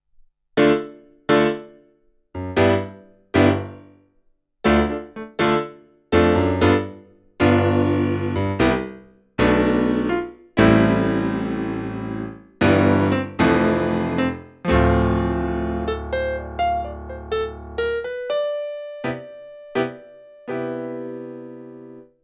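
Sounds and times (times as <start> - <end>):
CLP575 modern piano: 0.6 - 1.8, 2.4 - 3.9, 4.6 - 22.2.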